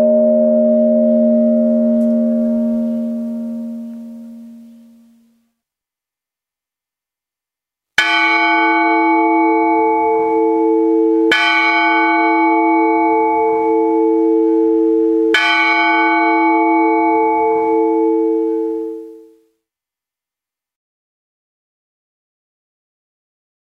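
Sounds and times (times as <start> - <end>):
bells ringing: 0.0 - 5.1, 8.0 - 19.1.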